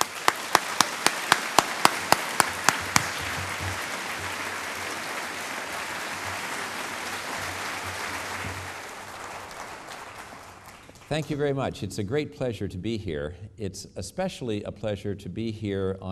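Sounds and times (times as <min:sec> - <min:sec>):
audience applause: 0:00.0 - 0:11.6
speech: 0:11.1 - 0:16.1.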